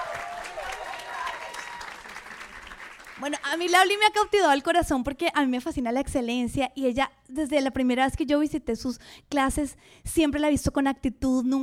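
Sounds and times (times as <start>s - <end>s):
audience applause for a Pilates teacher: 0.0s - 3.6s
speech: 3.2s - 11.6s.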